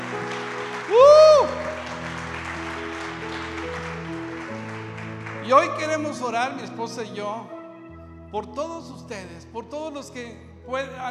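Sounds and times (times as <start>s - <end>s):
church audience applause: 0.0s - 6.4s
speech: 5.5s - 7.6s, 8.3s - 11.0s.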